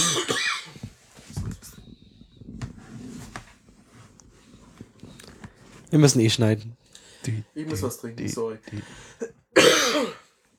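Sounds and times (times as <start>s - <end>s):
harsh throaty cough from someone with a cold: 0.0s - 0.8s, 9.6s - 10.4s
speech: 5.9s - 9.3s.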